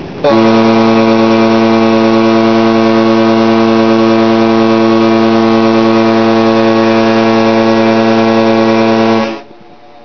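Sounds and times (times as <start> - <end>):
horn: 0.2 - 9.5.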